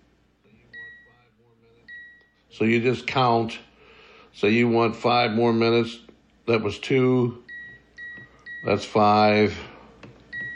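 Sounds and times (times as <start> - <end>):
speech: 2.5 - 3.7, 4.4 - 7.4, 8.6 - 9.7
timer button electronic beep: 7.5 - 8.8, 10.3 - 10.5.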